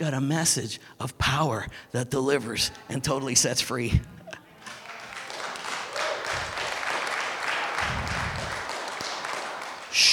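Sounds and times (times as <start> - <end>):
speech: 0.0 - 4.2
audience clapping: 4.6 - 10.1.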